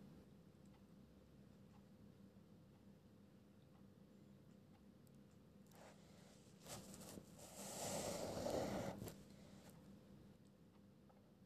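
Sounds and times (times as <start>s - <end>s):
pencil strokes and taps: 6.7s - 9.1s.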